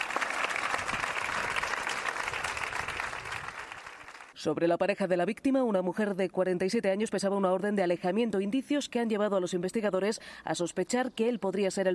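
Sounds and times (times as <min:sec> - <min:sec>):
large crowd clapping in Parla: 0:00.0 - 0:04.4
speech: 0:04.4 - 0:11.9.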